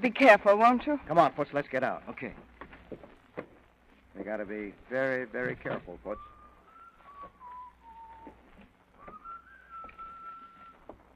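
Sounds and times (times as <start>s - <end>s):
speech: 0.0s - 3.5s, 4.2s - 6.3s
soft steady hiss: 0.0s - 11.1s
man whistling a meandering tune: 6.1s - 10.9s.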